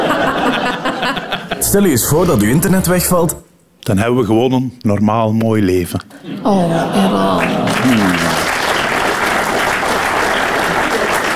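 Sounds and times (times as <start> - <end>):
laughter: 0.0 - 1.9, 6.1 - 11.3
speech: 1.7 - 8.4
audience applause: 6.8 - 11.3.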